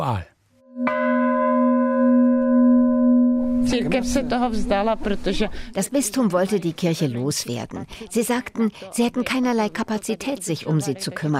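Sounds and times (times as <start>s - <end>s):
speech: 0.0s - 1.0s, 3.7s - 11.3s
church bell struck by hand: 0.7s - 4.6s.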